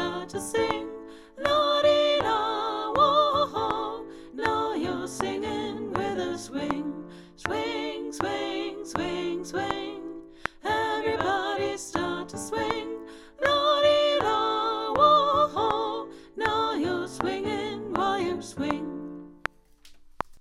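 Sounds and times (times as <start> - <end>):
soprano singing: 0.0 - 19.5.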